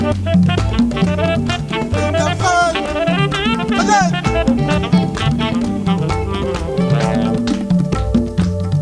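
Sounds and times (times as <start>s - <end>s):
rhythm: 0.0s - 8.8s.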